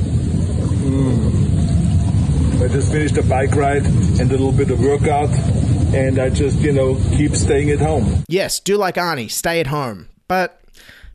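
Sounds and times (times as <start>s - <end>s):
water churning in a home jacuzzi: 0.0s - 8.3s
speech: 2.7s - 11.0s.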